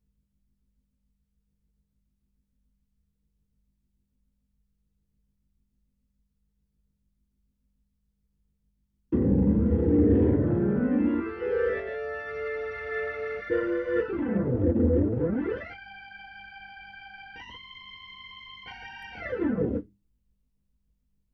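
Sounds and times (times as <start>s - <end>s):
Hammond organ: 9.2s - 19.8s.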